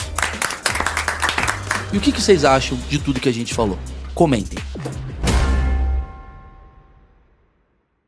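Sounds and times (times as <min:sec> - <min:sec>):
applause: 0:00.0 - 0:02.4
speech: 0:01.9 - 0:05.1.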